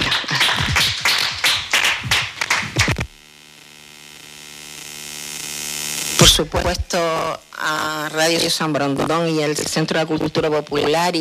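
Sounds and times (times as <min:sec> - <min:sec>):
audience applause: 0:00.0 - 0:03.0
speech: 0:06.4 - 0:11.1.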